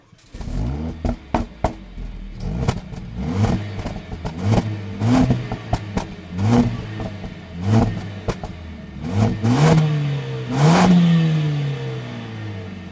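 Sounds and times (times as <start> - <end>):
Mercedes-AMG CLA 45 S engine revving: 0.0 - 12.8
Mercedes-AMG CLA 45 S exhaust pops and crackles: 0.1 - 9.8.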